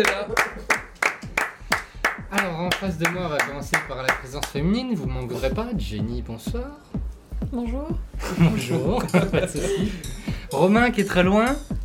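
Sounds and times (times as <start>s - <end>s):
speech: 0.0s - 0.4s, 2.4s - 11.8s
hand claps: 0.0s - 4.6s
laughter: 8.2s - 10.2s.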